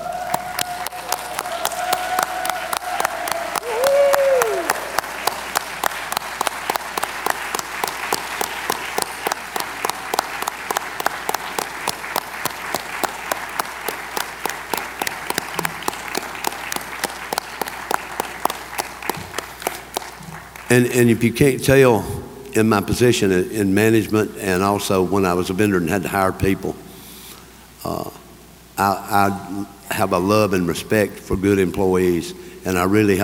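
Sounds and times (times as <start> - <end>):
whoop or whistle: 0.0 - 5.0
large audience applause: 0.0 - 20.8
speech: 20.7 - 26.8, 29.2 - 33.2.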